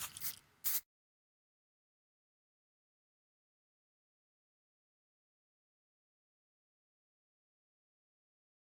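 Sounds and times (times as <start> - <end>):
graffiti spray can spraying: 0.0 - 0.8.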